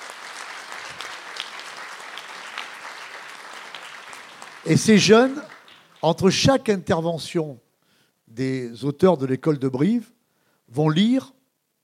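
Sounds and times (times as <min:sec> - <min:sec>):
audience applause: 0:00.0 - 0:06.3
speech: 0:04.6 - 0:07.6, 0:08.3 - 0:11.4.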